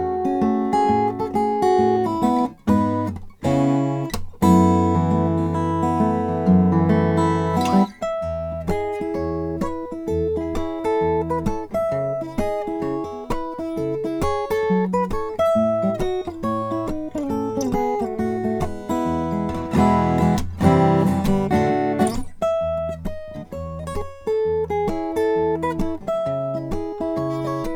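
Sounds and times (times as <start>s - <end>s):
Ribbecke Halfling Brazilian rosewood guitar with pin bridge: 0.0s - 27.7s.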